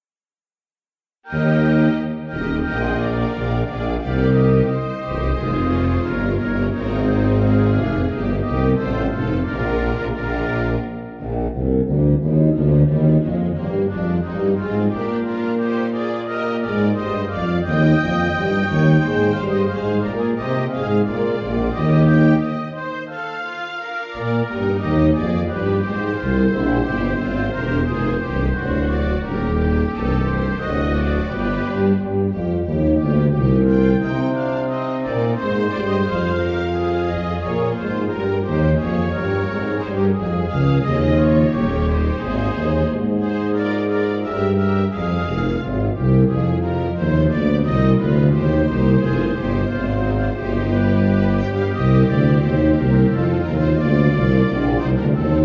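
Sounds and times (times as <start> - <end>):
instrumental music: 1.2 - 55.4.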